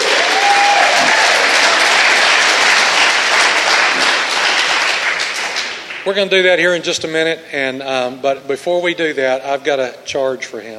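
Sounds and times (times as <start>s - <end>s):
person cheering: 0.0s - 1.6s
audience clapping: 0.0s - 6.6s
speech: 6.1s - 10.7s.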